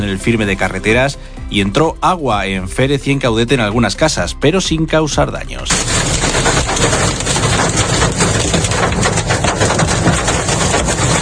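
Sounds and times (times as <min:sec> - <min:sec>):
speech: 0:00.1 - 0:08.0
hail falling during a storm in Hellín: 0:05.7 - 0:11.2.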